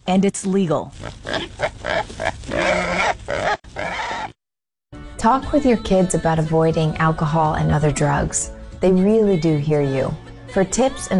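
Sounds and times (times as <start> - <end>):
speech: 0.1 - 3.6, 5.2 - 11.1
wild hog grunting: 1.0 - 4.3.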